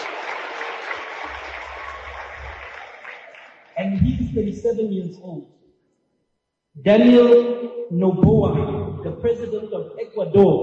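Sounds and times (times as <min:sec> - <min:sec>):
audience clapping: 0:00.0 - 0:04.8
speech: 0:03.8 - 0:05.6, 0:06.8 - 0:10.6.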